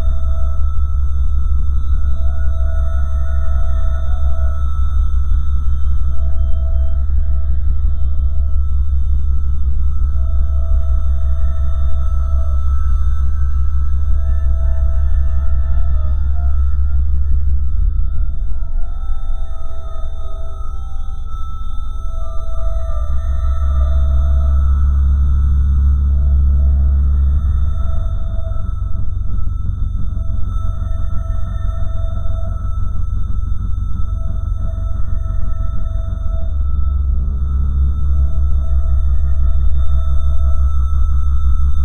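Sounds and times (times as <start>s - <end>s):
eerie ambience: 0.0s - 41.8s.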